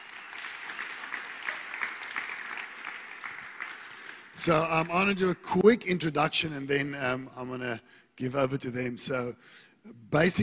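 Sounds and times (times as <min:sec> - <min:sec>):
audience clapping to welcome guests: 0:00.0 - 0:05.2
speech: 0:04.4 - 0:10.4.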